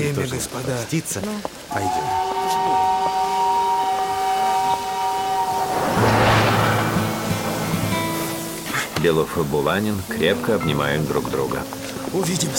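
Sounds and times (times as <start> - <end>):
speech: 0.0 - 3.2, 9.0 - 12.5
burst of hissing steam: 1.6 - 12.5
steam whistle of departing train: 1.7 - 8.8
low rumbling: 5.2 - 9.6.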